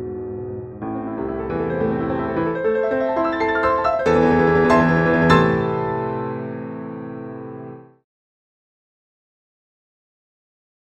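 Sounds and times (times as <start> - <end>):
arpeggio study: 0.0 - 7.9.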